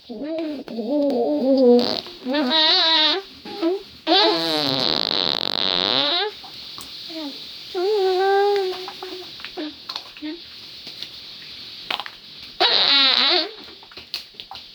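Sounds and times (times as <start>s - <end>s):
girl farting: 0.0s - 6.4s, 12.6s - 13.7s
girl pooping: 0.0s - 10.4s, 11.9s - 13.9s.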